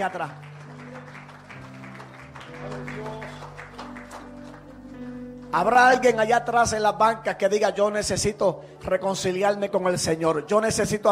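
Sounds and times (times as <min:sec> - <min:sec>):
speech: 0:00.0 - 0:00.5, 0:05.5 - 0:11.1
crowd clapping: 0:00.0 - 0:06.5.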